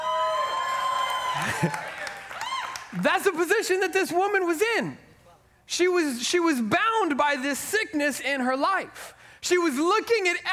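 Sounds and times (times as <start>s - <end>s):
audience clapping: 0.0s - 3.4s
speech: 1.4s - 2.0s, 2.9s - 5.0s, 5.7s - 10.5s.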